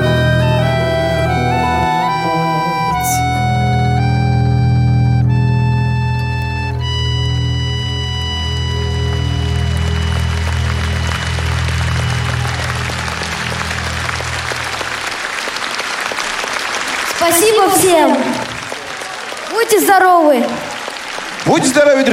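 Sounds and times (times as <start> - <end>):
sustained low musical chord: 0.0 - 15.7
audience applause after a song: 7.9 - 22.1
speech: 19.7 - 20.7, 21.5 - 22.1.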